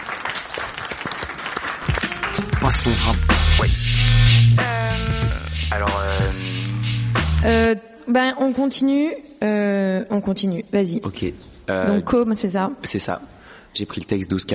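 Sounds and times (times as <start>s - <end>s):
audience applauding: 0.0s - 3.2s
speech: 2.6s - 6.6s, 7.4s - 14.5s.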